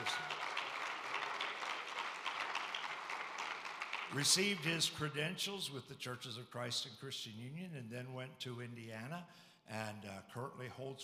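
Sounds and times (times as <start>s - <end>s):
audience clapping: 0.0s - 5.0s
speech: 4.1s - 11.0s.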